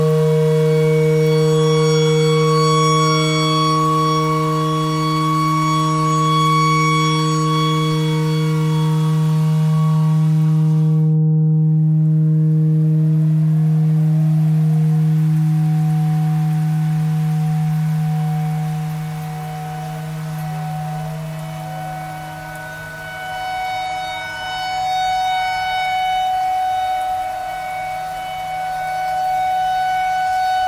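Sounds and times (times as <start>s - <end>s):
simple clarinet notes imitating a tornado siren: 0.0s - 12.3s, 13.1s - 30.6s.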